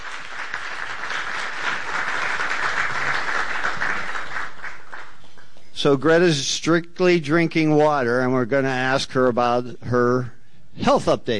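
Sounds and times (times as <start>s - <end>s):
audience applause: 0.0s - 5.5s
speech: 5.8s - 11.3s.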